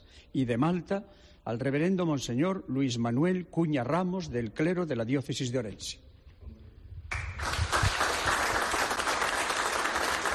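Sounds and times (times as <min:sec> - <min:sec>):
speech: 0:00.3 - 0:06.1
audience applause: 0:07.1 - 0:10.3.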